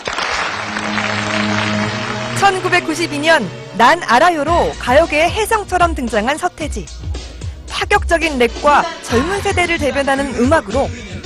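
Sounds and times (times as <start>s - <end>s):
crowd clapping: 0.0s - 3.0s
speech: 2.5s - 7.1s, 7.8s - 11.1s.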